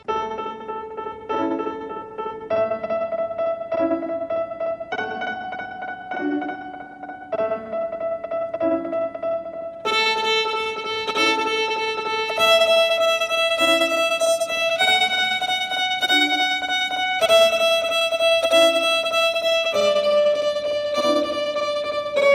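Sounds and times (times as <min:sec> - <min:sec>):
violin playing very slowly: 0:00.0 - 0:22.3.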